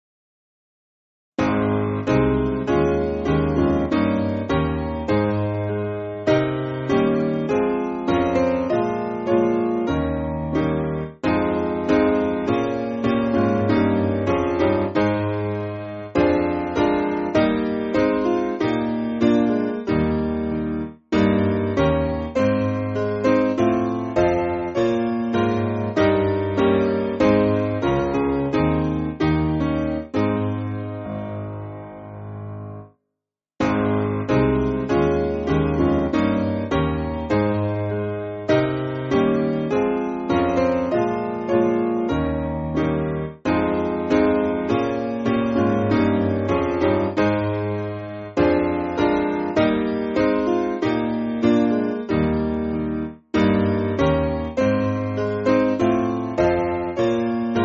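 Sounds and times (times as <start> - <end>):
church piano music: 1.4 - 32.9, 33.6 - 57.6.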